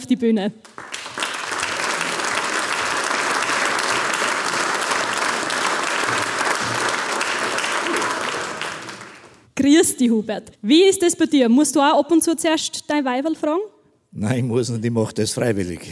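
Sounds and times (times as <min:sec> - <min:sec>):
speech: 0:00.1 - 0:00.9, 0:09.6 - 0:15.8
audience applause: 0:00.6 - 0:09.5.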